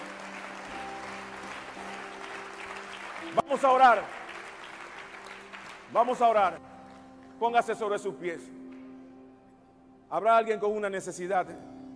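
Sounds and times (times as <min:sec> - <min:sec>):
audience applauding: 0:00.0 - 0:07.4
speech: 0:03.3 - 0:04.2, 0:05.9 - 0:06.7, 0:07.4 - 0:08.6, 0:10.1 - 0:11.7.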